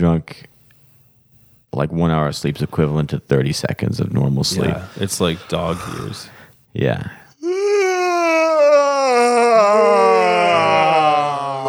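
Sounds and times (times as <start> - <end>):
speech: 0.0 - 0.5, 1.7 - 7.2
person yawning: 7.4 - 11.6.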